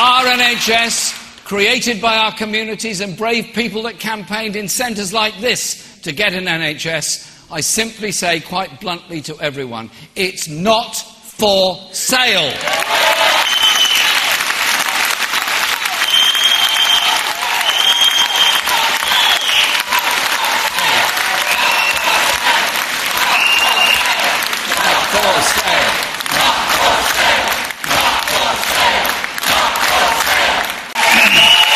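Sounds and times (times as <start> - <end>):
speech: 0.3 - 13.6
large audience applauding after political speech: 12.6 - 31.7
whistles and cheers: 12.7 - 14.4, 15.6 - 20.2, 21.3 - 22.4, 23.2 - 24.2, 31.0 - 31.7.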